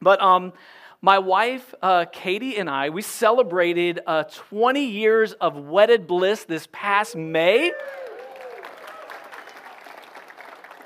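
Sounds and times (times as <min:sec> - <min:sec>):
speech: 0:00.0 - 0:08.0
audience applause: 0:07.7 - 0:10.8.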